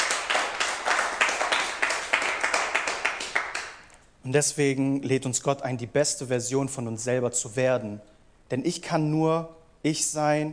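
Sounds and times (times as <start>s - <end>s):
audience applause: 0.0s - 3.8s
speech: 4.2s - 10.5s.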